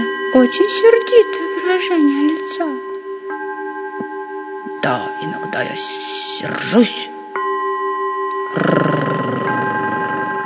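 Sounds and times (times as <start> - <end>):
speech: 0.3 - 2.8, 4.8 - 7.1, 8.5 - 8.8
voice growling like a dog: 8.4 - 10.4.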